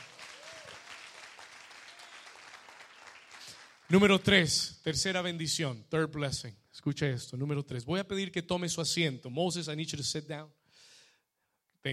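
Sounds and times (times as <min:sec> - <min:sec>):
audience applause: 0:00.0 - 0:04.0
speech: 0:03.9 - 0:10.6.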